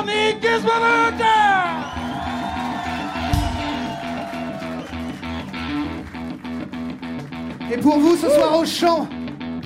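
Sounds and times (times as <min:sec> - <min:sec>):
speech: 0:00.1 - 0:01.3, 0:07.7 - 0:09.2
audience applauding: 0:01.4 - 0:08.8.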